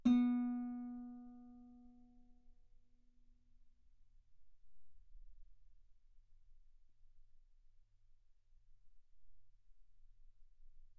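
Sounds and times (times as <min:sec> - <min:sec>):
guitar B3 note on B string played fortissimo: 0:00.0 - 0:01.4.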